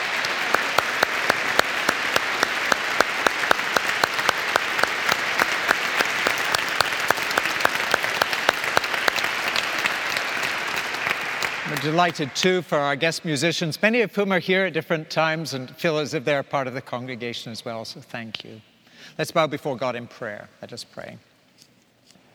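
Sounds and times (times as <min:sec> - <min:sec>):
audience applauding the choir: 0:00.0 - 0:12.8
speech: 0:11.8 - 0:21.3.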